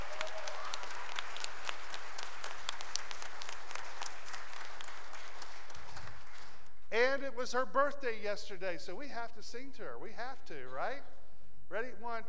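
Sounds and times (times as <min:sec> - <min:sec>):
audience applause: 0:00.0 - 0:06.7
speech: 0:07.2 - 0:12.2.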